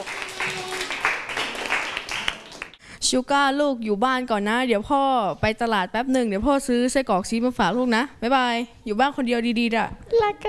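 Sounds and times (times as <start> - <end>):
audience applause: 0.0 - 2.8
speech: 3.0 - 10.4.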